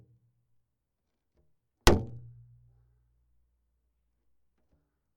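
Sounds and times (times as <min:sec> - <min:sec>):
hits on wood: 0:01.9 - 0:02.3.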